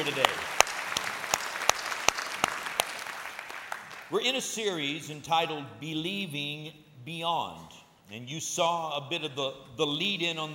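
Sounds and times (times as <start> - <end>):
speech: 0.0 - 0.6, 4.1 - 10.5
church congregation clapping to welcome first-time guests: 0.0 - 4.2.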